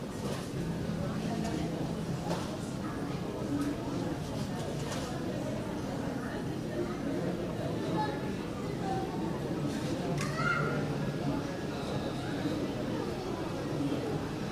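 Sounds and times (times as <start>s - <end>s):
murmur of passengers' voices in an airport terminal: 0.0s - 14.5s.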